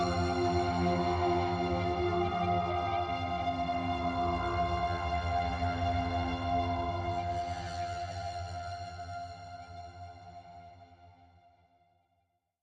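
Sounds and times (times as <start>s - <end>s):
drone: 0.0s - 8.6s.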